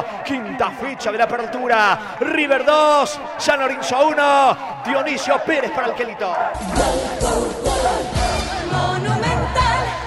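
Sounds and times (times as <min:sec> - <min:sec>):
speech: 0:00.0 - 0:07.7
stadium crowd shouting in celebration after a goal: 0:00.0 - 0:10.0.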